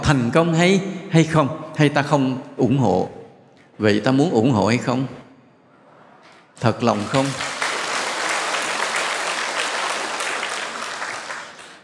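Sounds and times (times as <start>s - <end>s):
speech: 0.1s - 3.2s, 3.8s - 5.2s, 6.6s - 7.5s
audience applause at a Buddhist monk's talk: 6.9s - 11.8s.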